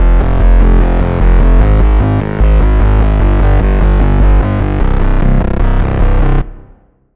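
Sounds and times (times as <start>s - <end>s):
bass: 0.0s - 7.1s.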